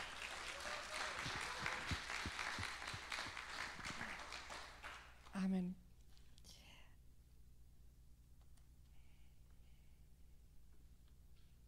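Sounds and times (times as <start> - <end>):
audience applause: 0.0 - 5.1
speech: 5.4 - 5.8.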